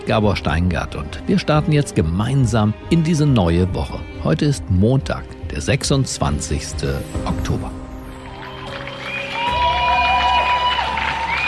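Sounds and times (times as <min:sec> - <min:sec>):
speech: 0:00.0 - 0:07.8
crowd cheering and applauding at a day of action for healthcare care workers: 0:07.9 - 0:11.4
shrill whistle-like tones: 0:08.4 - 0:11.4.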